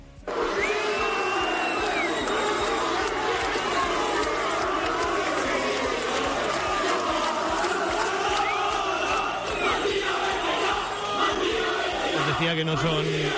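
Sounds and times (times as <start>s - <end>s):
football crowd jeering and chanting at president: 0.2s - 13.3s
whistles: 0.5s - 3.2s, 8.3s - 9.8s.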